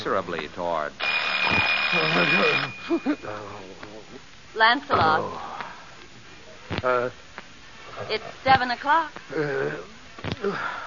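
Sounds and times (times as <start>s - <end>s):
speech: 0.0s - 5.6s, 6.7s - 7.2s, 8.0s - 10.8s
alarm clock bell ringing: 1.0s - 3.4s.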